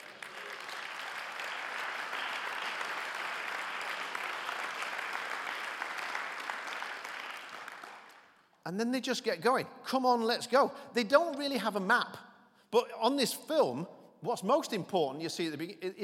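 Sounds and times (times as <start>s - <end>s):
audience applause: 0.0s - 8.3s
speech: 8.7s - 16.0s.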